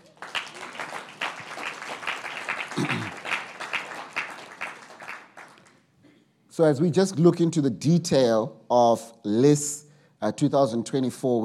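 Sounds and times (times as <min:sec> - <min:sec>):
audience applause: 0:00.0 - 0:05.8
speech: 0:06.6 - 0:11.4.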